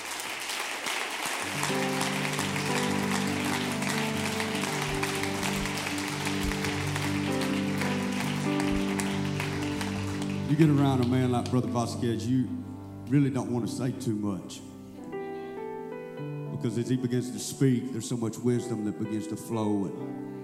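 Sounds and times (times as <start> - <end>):
audience applause: 0.0 - 11.6
speech: 10.5 - 14.7, 16.6 - 20.4.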